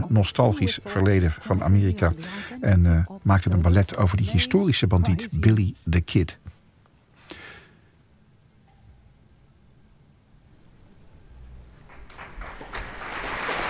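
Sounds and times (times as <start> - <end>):
speech: 0.1 - 6.4
concert audience applause for conductor: 11.8 - 13.6.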